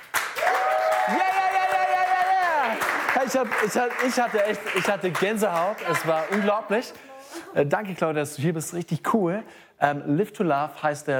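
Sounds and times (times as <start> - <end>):
crew applause: 0.0 - 6.9
speech: 1.1 - 1.3, 3.3 - 11.1.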